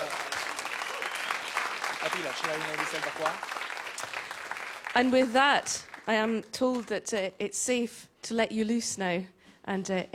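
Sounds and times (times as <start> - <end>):
audience applause: 0.0 - 6.4
speech: 2.0 - 3.7, 5.0 - 10.1.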